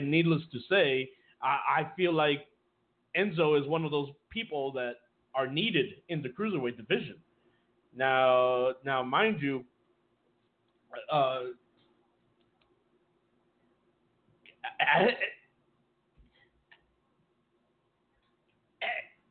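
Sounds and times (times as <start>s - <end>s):
speech: 0.0s - 2.5s, 3.1s - 7.2s, 7.9s - 9.7s, 10.9s - 11.6s, 14.8s - 15.4s
person coughing and choking: 18.8s - 19.2s.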